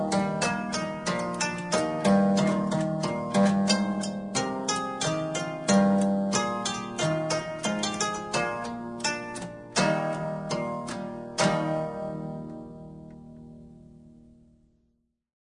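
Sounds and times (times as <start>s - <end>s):
guitarpsichord playing: 0.0s - 14.3s.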